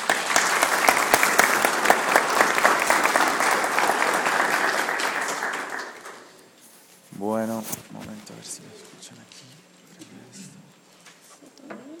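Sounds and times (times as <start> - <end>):
crowd applauding: 0.0 - 6.4.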